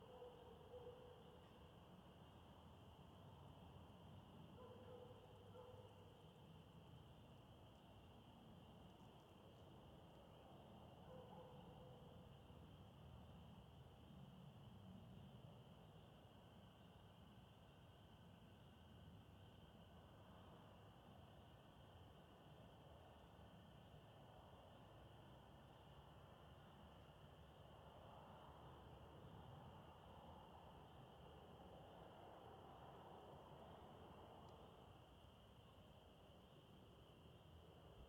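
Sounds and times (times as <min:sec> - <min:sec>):
dog barking in suburbia at dusk: 0:00.0 - 0:01.3, 0:04.6 - 0:06.2, 0:11.0 - 0:12.2
crickets chirping in suburbia at dusk: 0:00.0 - 0:38.0.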